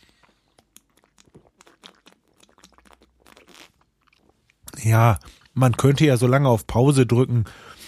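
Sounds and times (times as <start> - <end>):
person drinking to soothe a dry throat: 0.0 - 5.9
speech: 4.8 - 7.7.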